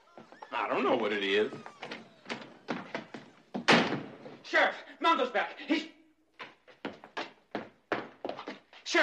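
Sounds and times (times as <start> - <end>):
speech: 0.5 - 1.8, 4.5 - 6.0
doors being torn off with splintering thuds: 3.6 - 4.2.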